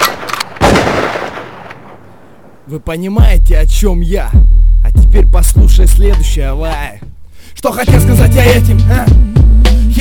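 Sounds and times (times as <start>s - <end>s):
gunshot sound effect: 0.0s - 2.0s
speech: 2.7s - 9.3s.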